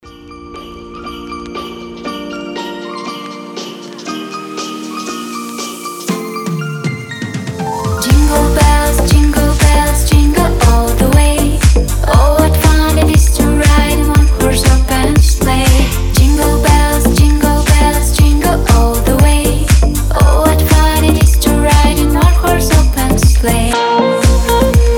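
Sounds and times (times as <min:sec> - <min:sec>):
deep house music: 0:08.0 - 0:24.9.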